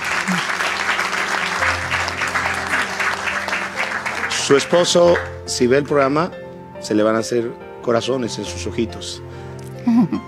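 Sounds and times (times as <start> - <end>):
applause: 0.0 - 5.6
speech: 4.5 - 10.2.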